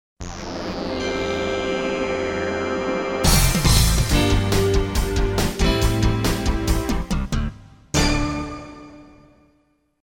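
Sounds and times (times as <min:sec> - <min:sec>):
news exit music bed: 0:00.5 - 0:07.8.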